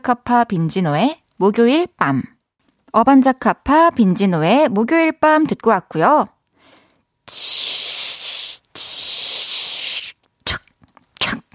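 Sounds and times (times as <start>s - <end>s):
speech: 0.0s - 2.3s, 2.9s - 6.4s, 7.3s - 7.8s
person imitating pancakes sizzling while frying: 7.3s - 11.5s.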